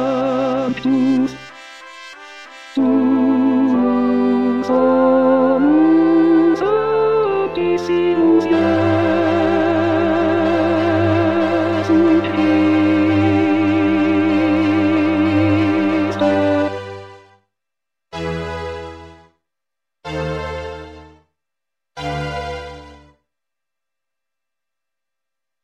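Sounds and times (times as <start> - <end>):
tenor singing: 0.0 - 1.5, 2.8 - 17.1.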